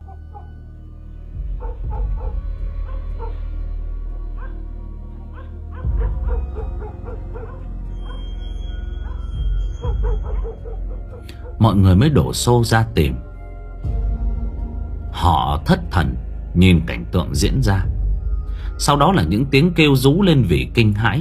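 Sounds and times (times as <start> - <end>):
low rumbling background: 0.6 - 21.1
hunting dogs and police working dogs barking excitedly on a search: 1.6 - 3.4, 4.4 - 4.6, 5.3 - 11.6
speech: 11.6 - 13.2, 15.7 - 17.9, 18.8 - 21.1.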